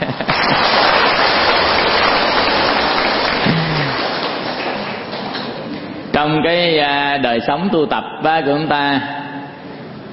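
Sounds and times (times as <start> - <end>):
round of applause: 0.0 - 5.6
speech: 6.3 - 9.2.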